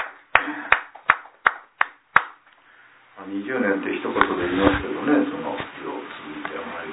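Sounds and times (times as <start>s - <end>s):
handclaps given as applause: 0.0s - 2.6s
speech: 3.3s - 5.4s.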